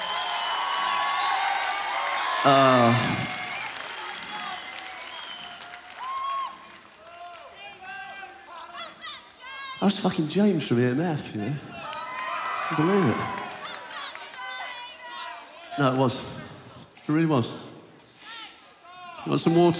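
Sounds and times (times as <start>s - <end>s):
audience applause: 0.0s - 9.3s, 11.8s - 15.4s
loud cheer: 0.0s - 10.1s, 11.6s - 16.8s
speech: 2.4s - 3.2s, 9.8s - 11.7s, 12.7s - 13.4s, 15.8s - 16.4s, 17.1s - 17.7s, 19.3s - 19.7s.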